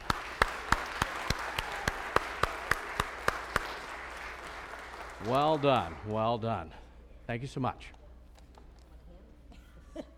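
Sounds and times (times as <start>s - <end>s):
audience applause: 0.0s - 6.2s
speech: 5.2s - 8.0s.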